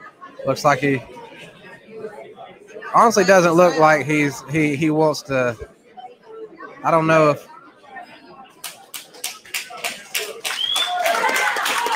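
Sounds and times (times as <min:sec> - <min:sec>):
crowd noise: 0:00.0 - 0:11.9
speech: 0:00.4 - 0:02.1, 0:02.9 - 0:05.7, 0:06.8 - 0:07.5
audience clapping: 0:08.6 - 0:11.9
whistles: 0:10.4 - 0:11.2.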